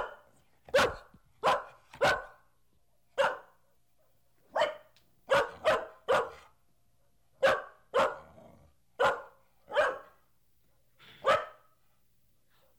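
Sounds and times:
medium-sized dog barking: 0.0s - 2.4s, 3.2s - 3.6s, 4.5s - 6.5s, 7.4s - 8.3s, 9.0s - 10.2s, 11.1s - 11.8s.

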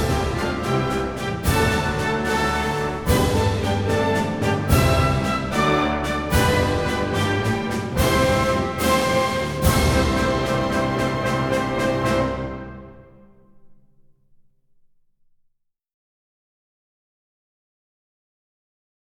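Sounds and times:
national anthem: 0.0s - 13.3s.

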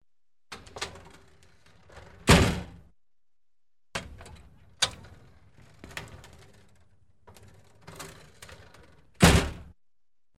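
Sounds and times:
door with blinds opening and closing: 0.5s - 2.8s, 3.9s - 9.8s.

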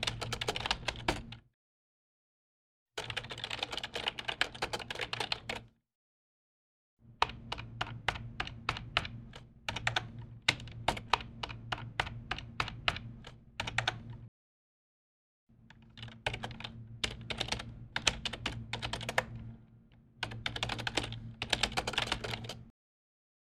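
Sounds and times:
typing text on a computer keyboard: 0.0s - 1.4s, 3.0s - 5.7s, 7.2s - 14.3s, 15.7s - 19.5s, 20.2s - 22.7s.

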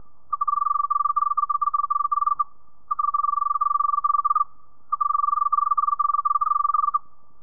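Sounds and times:
cricket chirping softly and monotonously: 0.0s - 7.4s.

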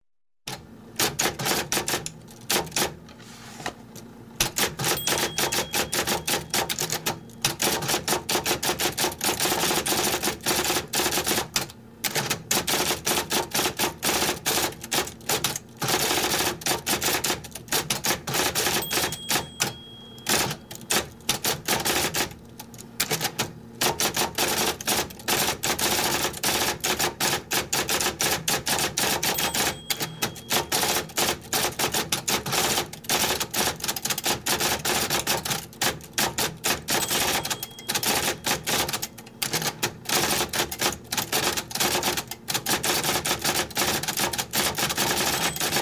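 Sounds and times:
electric typewriter fast typing: 0.5s - 3.0s, 4.4s - 45.8s.

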